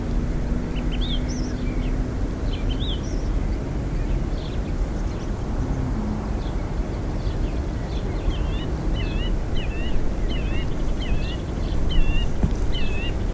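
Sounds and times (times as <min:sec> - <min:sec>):
songbirds singing: 0:00.0 - 0:13.3.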